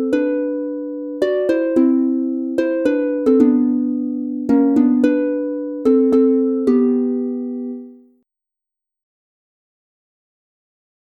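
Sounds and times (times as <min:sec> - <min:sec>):
instrumental in G major on harp: 0:00.0 - 0:08.1.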